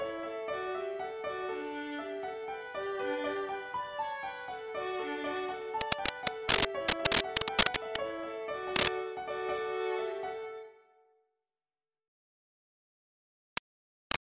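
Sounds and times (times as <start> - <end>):
slow reel melody with thirds harmony: 0.0 - 11.1.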